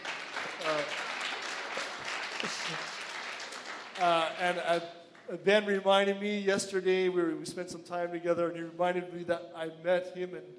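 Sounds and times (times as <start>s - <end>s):
audience clapping: 0.0s - 5.4s
speech: 2.4s - 3.0s, 4.0s - 10.5s.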